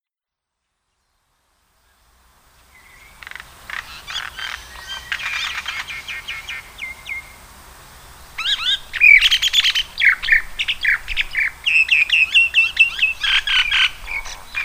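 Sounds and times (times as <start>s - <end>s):
common myna calling on Yonaguni: 2.7s - 7.4s, 8.4s - 14.6s.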